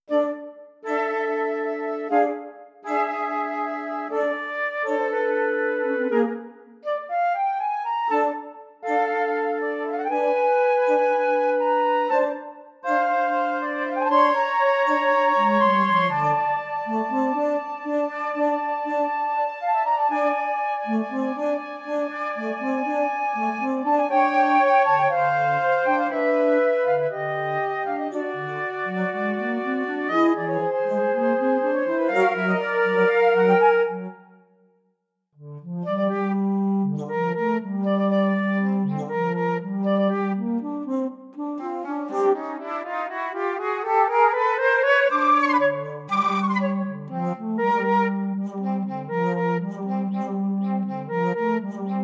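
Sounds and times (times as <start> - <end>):
flutes: 0.1 - 34.8, 35.4 - 52.0.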